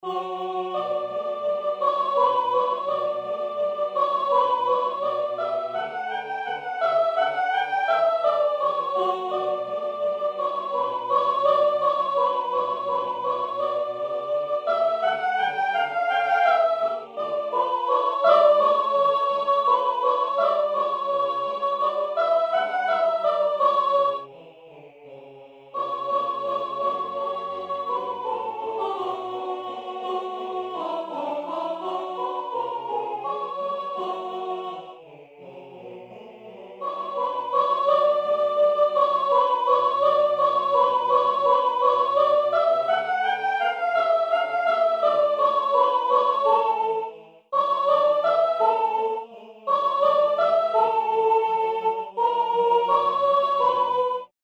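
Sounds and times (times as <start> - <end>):
soprano singing: 0.0 - 24.4, 25.1 - 54.3.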